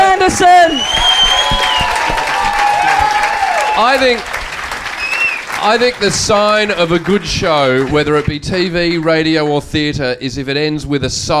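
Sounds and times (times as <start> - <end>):
speech: 0.3 - 1.0, 3.8 - 4.4, 5.6 - 11.3
audience round of applause: 0.4 - 9.2.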